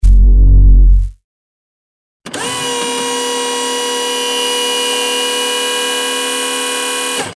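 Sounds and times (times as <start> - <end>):
signal sound: 0.0 - 1.2.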